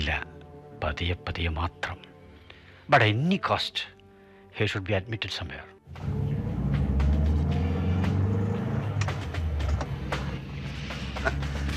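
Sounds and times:
speech: 0:00.1 - 0:02.1, 0:02.9 - 0:04.0, 0:04.6 - 0:06.1
car driving: 0:05.9 - 0:11.7.

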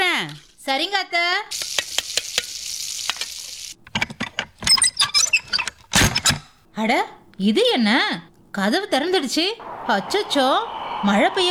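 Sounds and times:
speech: 0:00.7 - 0:01.6, 0:06.8 - 0:11.5
food frying and sizzling in a pan: 0:01.5 - 0:03.8
oil popping: 0:01.6 - 0:06.0
laughter: 0:09.6 - 0:11.5.

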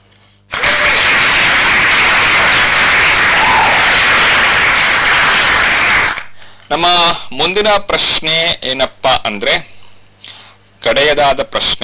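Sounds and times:
applause for listeners who answered a quiz correctly: 0:00.5 - 0:06.4
speech: 0:06.7 - 0:09.7, 0:10.8 - 0:11.8.

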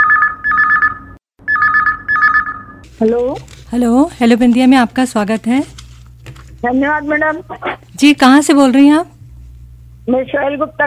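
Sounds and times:
telephone ringing: 0:00.0 - 0:02.8
speech: 0:03.0 - 0:05.8, 0:06.6 - 0:09.1, 0:10.1 - 0:10.8.

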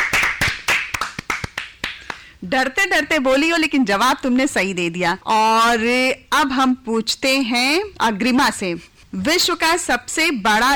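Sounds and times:
small group clapping for a child's correct quiz answer: 0:00.0 - 0:02.3
speech: 0:02.4 - 0:10.7.

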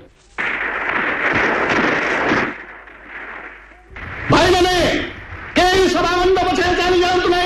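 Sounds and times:
soldiers firing blank shots: 0:00.4 - 0:07.4.

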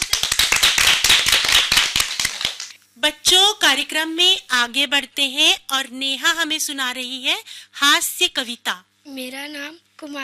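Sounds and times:
audience applause: 0:00.0 - 0:02.7
speech: 0:03.0 - 0:10.2.

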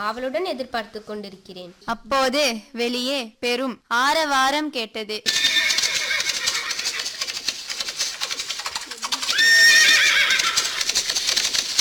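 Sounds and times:
speech: 0:00.0 - 0:05.5
horse whinnying: 0:05.3 - 0:07.2, 0:09.0 - 0:11.2
horse hooves clip-clopping: 0:05.3 - 0:11.7.

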